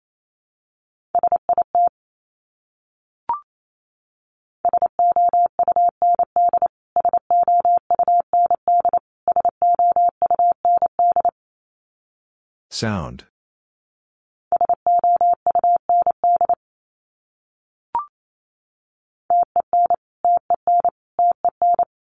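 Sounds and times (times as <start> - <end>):
Morse code beeps at 28 wpm: 4.7 - 11.3, 14.6 - 16.6, 19.3 - 21.9
speech: 12.8 - 13.3.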